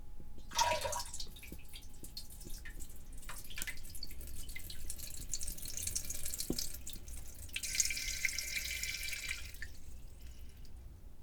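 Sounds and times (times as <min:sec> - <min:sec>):
drips: 0:00.4 - 0:10.8
person urinating: 0:00.5 - 0:10.8.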